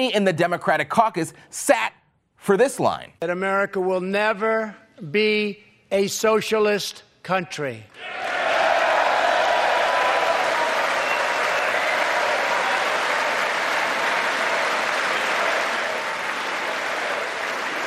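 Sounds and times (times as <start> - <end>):
speech: 0.0 - 8.3
large audience applause: 8.0 - 17.8.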